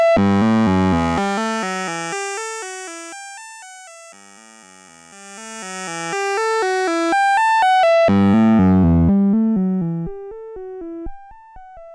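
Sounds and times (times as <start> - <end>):
VCF1 drive band-pass filter sweep: 0.1 - 2.2, 4.4 - 10.2.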